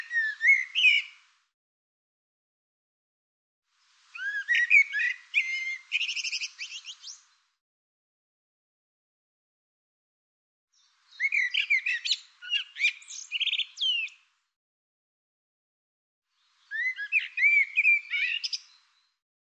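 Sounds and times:
bird singing bright phrases of varied whistles and chirps: 0.0s - 1.2s, 4.1s - 7.4s, 10.8s - 14.3s, 16.4s - 19.2s.

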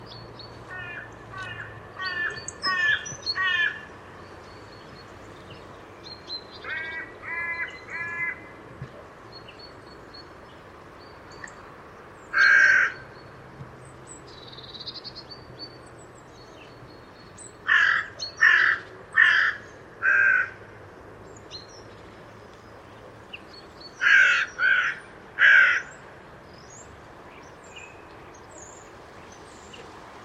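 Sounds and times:
bird giving harsh caws: 0.7s - 3.9s, 6.6s - 8.5s, 12.3s - 13.0s, 17.6s - 20.6s, 24.0s - 26.0s.

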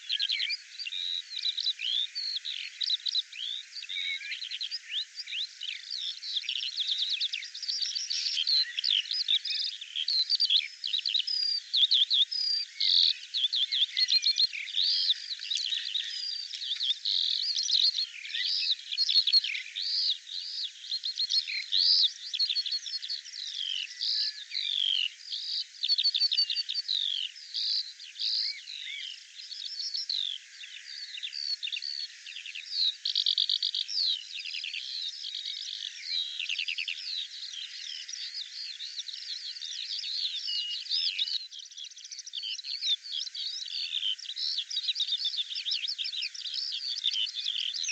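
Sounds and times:
bird singing: 0.0s - 47.9s.

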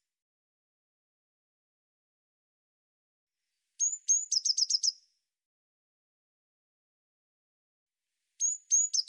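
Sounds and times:
Eurasian blue tit thin high whistled notes: 3.5s - 5.1s, 8.4s - 9.0s.

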